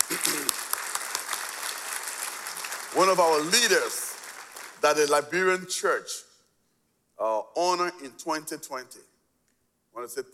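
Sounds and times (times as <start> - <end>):
church congregation applauding honouring its pastor: 0.0 - 5.5
speech: 3.0 - 4.1, 4.8 - 6.3, 7.2 - 9.1, 10.0 - 10.3.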